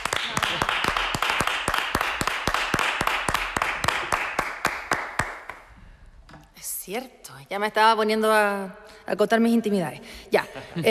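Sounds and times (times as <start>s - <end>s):
audience applause: 0.0s - 5.5s
speech: 6.9s - 10.8s.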